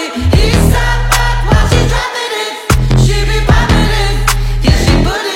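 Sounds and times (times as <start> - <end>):
sped up remix: 0.2 - 5.2.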